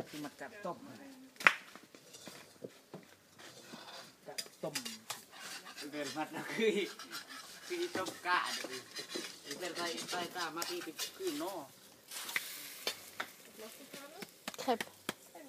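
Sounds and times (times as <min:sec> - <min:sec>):
scraping stirs in a pan: 0:01.9 - 0:15.3
flour and water crepe sizzling in a pan: 0:03.3 - 0:14.5.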